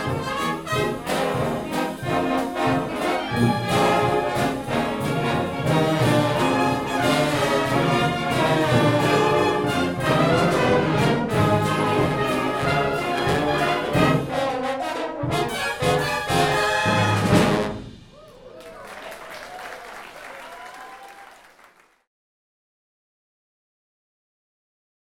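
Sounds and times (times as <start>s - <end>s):
trombone ragtime music: 0.0s - 18.1s.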